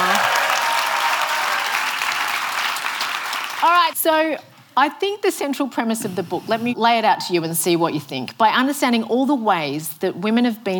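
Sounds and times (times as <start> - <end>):
audience applause: 0.0 - 3.9
speech: 3.9 - 10.7.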